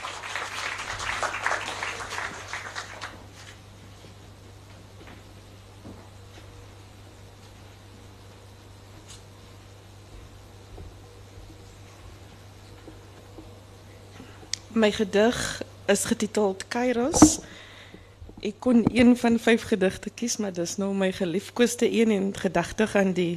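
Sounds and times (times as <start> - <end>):
audience applause: 0.0 - 3.5
speech: 14.8 - 17.6, 18.4 - 23.3.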